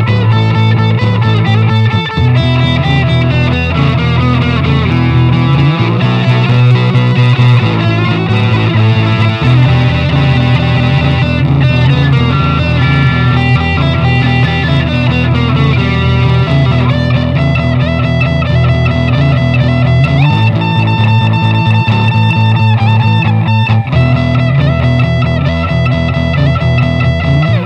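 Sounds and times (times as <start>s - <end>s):
rock and roll music: 0.0s - 27.6s.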